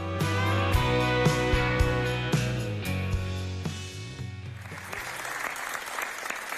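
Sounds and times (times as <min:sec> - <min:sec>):
song with steady bass and sustained chords: 0:00.0 - 0:04.7
crowd applause: 0:04.5 - 0:06.5.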